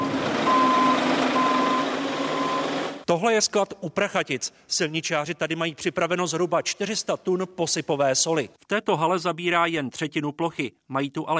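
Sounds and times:
gritter truck reversing alarm beeps: 0:00.0 - 0:03.0
speech: 0:03.1 - 0:11.3.

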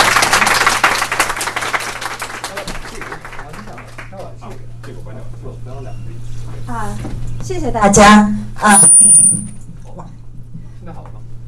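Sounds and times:
audience applause: 0:00.0 - 0:04.6
speech: 0:07.5 - 0:08.9.

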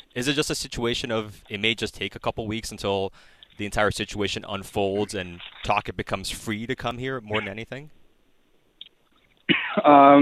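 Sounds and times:
speech: 0:00.2 - 0:08.0, 0:09.8 - 0:10.2
cough: 0:09.5 - 0:10.1.

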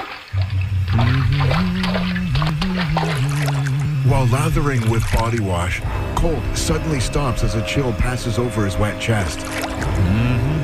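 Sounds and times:
bathtub water bubbling with low gurgling burble: 0:00.0 - 0:06.2, 0:09.2 - 0:10.1
speech: 0:04.2 - 0:10.3.

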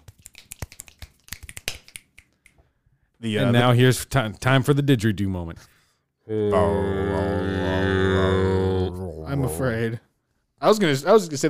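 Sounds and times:
finger snaps in a jazz club music segment: 0:00.0 - 0:02.7
speech: 0:03.2 - 0:05.7, 0:06.3 - 0:08.6, 0:09.3 - 0:10.0, 0:10.6 - 0:11.4.

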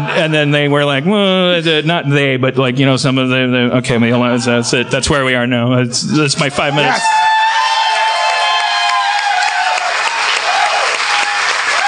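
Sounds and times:
speech: 0:00.2 - 0:07.3
audience applause: 0:06.8 - 0:11.8.

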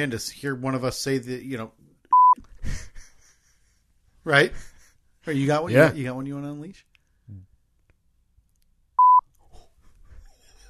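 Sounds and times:
speech: 0:00.0 - 0:01.8, 0:04.2 - 0:07.5
censor beep: 0:02.1 - 0:02.4, 0:09.0 - 0:09.2.

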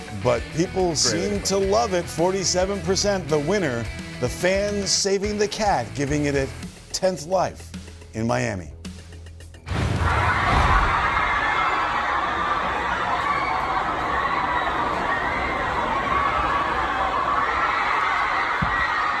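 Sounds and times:
speech: 0:00.2 - 0:08.8
stadium crowd screaming and cheering: 0:09.9 - 0:19.1.

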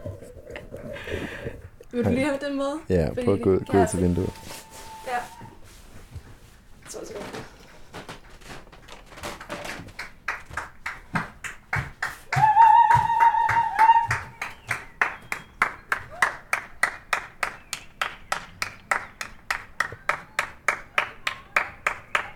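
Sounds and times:
speech: 0:02.0 - 0:04.4
group clapping hands outdoors: 0:09.4 - 0:22.3.

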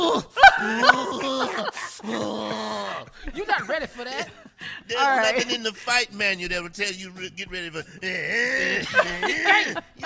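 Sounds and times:
laughter: 0:00.4 - 0:10.0
person imitating a growl with their voice: 0:00.6 - 0:03.2, 0:08.1 - 0:09.6
speech: 0:03.4 - 0:10.0.

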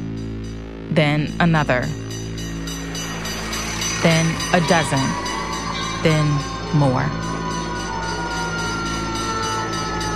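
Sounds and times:
speech: 0:01.0 - 0:02.0, 0:04.0 - 0:05.2, 0:06.0 - 0:07.3
fire truck sirens: 0:02.6 - 0:10.1.

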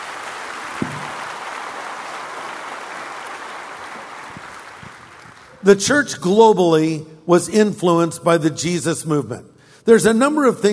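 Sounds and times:
audience applause: 0:00.0 - 0:05.6
speech: 0:05.6 - 0:10.7.

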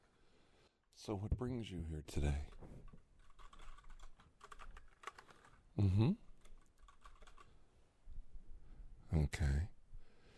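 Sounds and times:
speech: 0:01.0 - 0:02.7, 0:05.8 - 0:06.2
computer keyboard typing a report: 0:02.4 - 0:05.6, 0:06.2 - 0:07.5.

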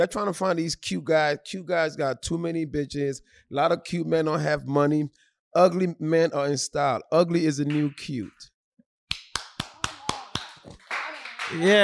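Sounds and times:
speech: 0:00.0 - 0:08.5, 0:11.5 - 0:11.8
sharp evenly spaced hand claps: 0:07.7 - 0:08.0, 0:09.1 - 0:11.8.

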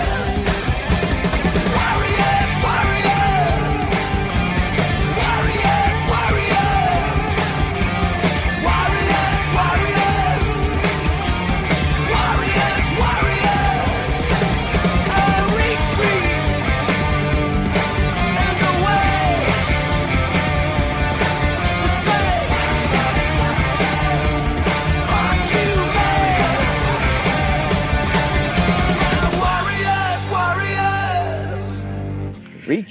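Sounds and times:
driving drums: 0:00.0 - 0:32.0
heavy distorted guitars: 0:00.0 - 0:32.8
loud dense rock song: 0:00.0 - 0:32.8
shouted vocals: 0:01.7 - 0:16.8, 0:18.2 - 0:19.7, 0:21.6 - 0:28.0, 0:28.7 - 0:31.8.

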